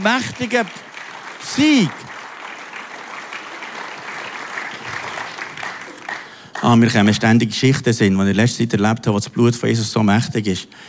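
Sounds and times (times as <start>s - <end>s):
speech: 0.0s - 2.1s, 6.6s - 10.8s
applause: 0.0s - 7.2s.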